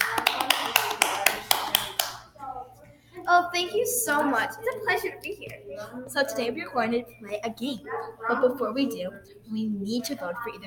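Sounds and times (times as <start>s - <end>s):
people clapping: 0.0s - 2.3s
speech: 3.3s - 10.6s.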